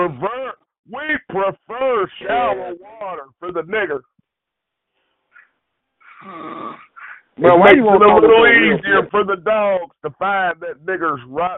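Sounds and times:
speech: 0:00.1 - 0:04.1, 0:07.4 - 0:11.5
person snoring: 0:06.0 - 0:07.2.

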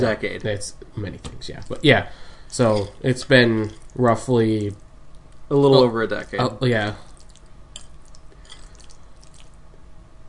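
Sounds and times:
speech: 0:00.0 - 0:04.8, 0:05.5 - 0:07.1
low steady hum: 0:00.0 - 0:10.2
person eating goulash: 0:01.6 - 0:05.5, 0:06.8 - 0:09.8.

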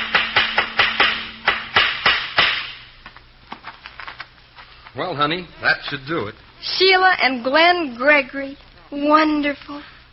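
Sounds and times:
hammer driving nails while a sign goes up outside a house: 0:00.0 - 0:02.8
faint hum: 0:00.0 - 0:10.1
speech: 0:05.0 - 0:09.9.

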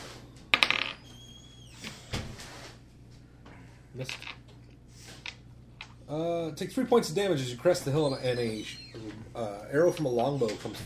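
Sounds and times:
dice clattering across a hard tabletop: 0:00.5 - 0:01.0, 0:04.0 - 0:04.5
speech: 0:04.0 - 0:04.4, 0:06.1 - 0:10.8.

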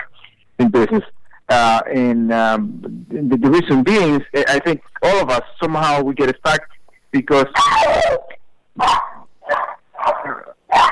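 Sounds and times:
speech: 0:00.8 - 0:09.1
dog barking: 0:08.8 - 0:10.9.

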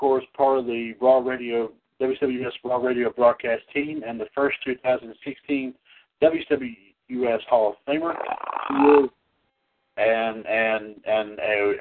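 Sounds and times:
speech: 0:00.0 - 0:09.2, 0:10.0 - 0:11.7
loud belch: 0:08.2 - 0:09.1.

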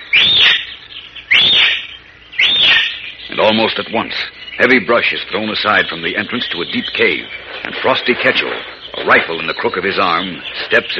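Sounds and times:
shrill human whistles: 0:00.0 - 0:00.7, 0:01.3 - 0:03.0
speech: 0:03.5 - 0:10.9.

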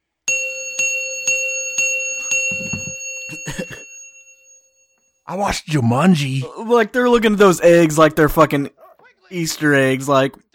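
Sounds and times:
metallic bell dings: 0:00.3 - 0:05.0
speech: 0:05.3 - 0:10.4.

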